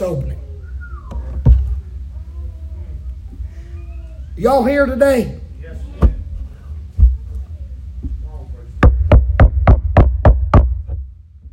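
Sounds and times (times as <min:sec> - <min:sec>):
speech: 0:00.0 - 0:00.3, 0:04.4 - 0:05.4
sharp raps on a door: 0:08.8 - 0:11.0.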